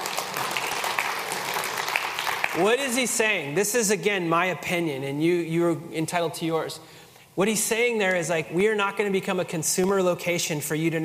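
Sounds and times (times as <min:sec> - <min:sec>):
audience applause: 0:00.0 - 0:02.7
speech: 0:02.6 - 0:11.0.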